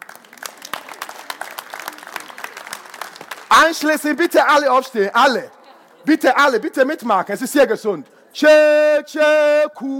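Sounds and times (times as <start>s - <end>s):
audience applause: 0.0s - 4.2s
speech: 3.6s - 9.9s.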